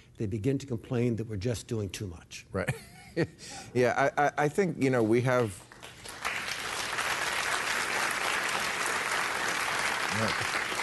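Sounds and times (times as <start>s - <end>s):
speech: 0.2s - 5.7s, 10.2s - 10.6s
audience applause: 5.7s - 10.8s.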